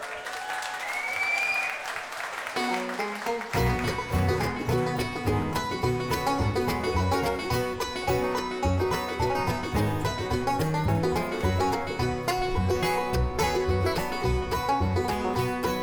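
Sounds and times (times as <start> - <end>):
audience applause welcoming a bluegrass band: 0.0 - 4.8
bluegrass band playing with bright string notes: 2.6 - 15.8.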